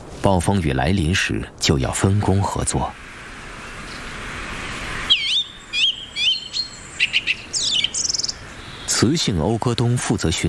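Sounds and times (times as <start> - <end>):
speech: 0.2 - 3.0, 9.0 - 10.4
male bird's loud territorial call: 3.5 - 9.1.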